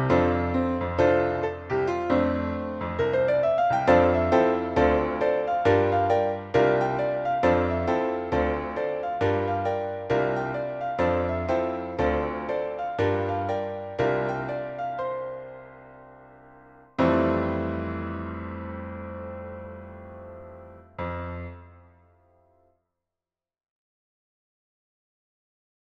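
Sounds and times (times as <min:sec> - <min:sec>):
piano note E flat: 0:00.0 - 0:22.5.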